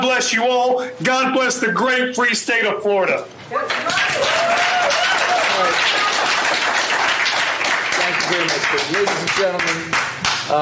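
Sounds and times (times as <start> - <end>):
speech: 0.0 - 6.0, 8.1 - 10.6
audience clapping after public comment: 3.6 - 10.6.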